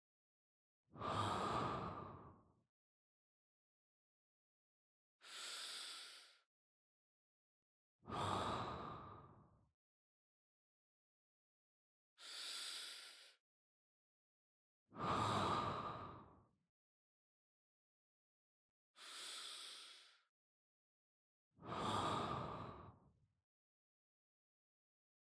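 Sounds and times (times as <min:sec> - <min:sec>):
person breathing in sleep: 0:01.0 - 0:02.3, 0:05.2 - 0:06.4, 0:08.1 - 0:09.4, 0:12.2 - 0:13.4, 0:15.0 - 0:16.3, 0:19.0 - 0:20.3, 0:21.6 - 0:23.0.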